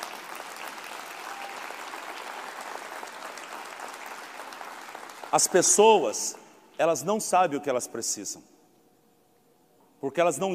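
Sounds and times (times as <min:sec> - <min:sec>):
audience applauding: 0:00.0 - 0:05.8
speech: 0:05.3 - 0:08.5, 0:10.0 - 0:10.5.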